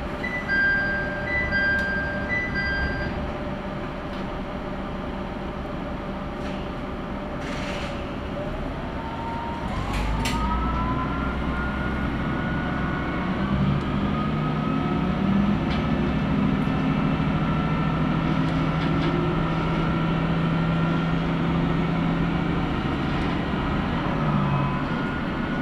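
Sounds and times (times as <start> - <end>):
brief beeps: 0.2 - 3.2
Tenryu Hamanako Railway train motor humming: 1.1 - 25.6.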